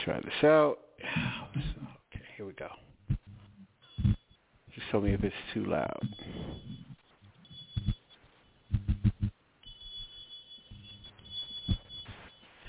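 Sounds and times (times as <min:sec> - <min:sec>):
speech: 0:00.1 - 0:01.7, 0:02.4 - 0:02.8, 0:04.9 - 0:06.6
whistle-like test tone: 0:06.0 - 0:08.9, 0:09.6 - 0:12.6.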